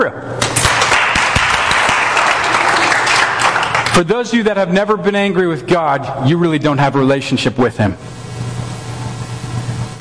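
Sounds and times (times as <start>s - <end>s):
speech: 0.0s - 0.3s, 4.0s - 8.2s
audience applause: 0.4s - 4.1s.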